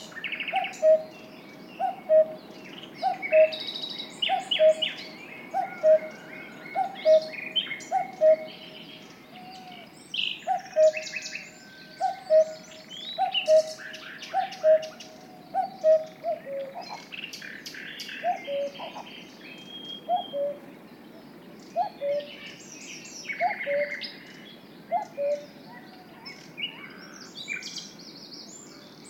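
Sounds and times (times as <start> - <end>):
cuckoo calling: 0.0 - 20.8, 21.7 - 22.6, 23.3 - 24.3, 24.9 - 27.7
other birds chirping and trilling: 0.0 - 29.0.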